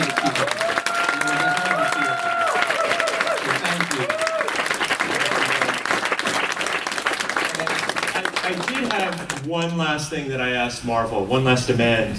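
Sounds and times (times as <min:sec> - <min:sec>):
convention audience round of applause: 0:00.0 - 0:09.5
speech: 0:09.5 - 0:12.1.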